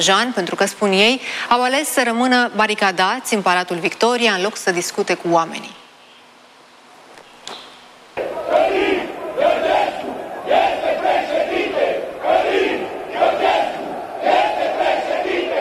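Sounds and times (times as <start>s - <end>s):
speech: 0.0s - 5.8s
protest crowd shouting in Piața Victoriei: 8.2s - 15.6s.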